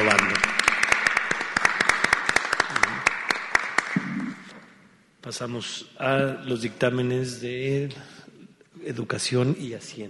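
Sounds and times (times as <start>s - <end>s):
applause: 0.0s - 4.5s
speech: 5.3s - 8.2s, 8.8s - 10.0s.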